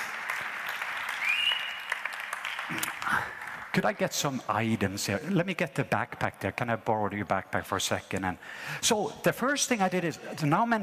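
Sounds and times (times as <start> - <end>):
audience applause at a prayer meeting: 0.0 - 4.0
speech: 2.7 - 10.8.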